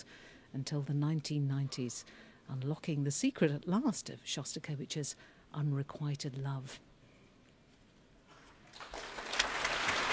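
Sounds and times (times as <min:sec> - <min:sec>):
speech: 0:00.0 - 0:06.9
concert audience applause: 0:08.7 - 0:10.1.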